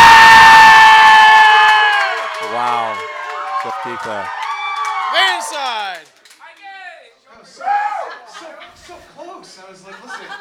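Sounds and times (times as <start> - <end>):
loud crowd cheering: 0.0 - 6.2, 7.5 - 8.4
speech: 4.0 - 4.4
laughter: 7.9 - 10.3.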